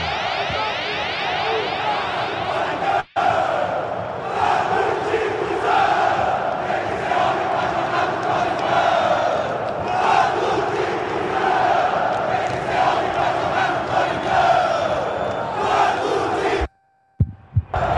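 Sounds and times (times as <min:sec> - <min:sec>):
football fans chanting and shouting angrily in stadium: 0:00.0 - 0:16.7, 0:17.7 - 0:17.9
short thumps: 0:17.2 - 0:17.8.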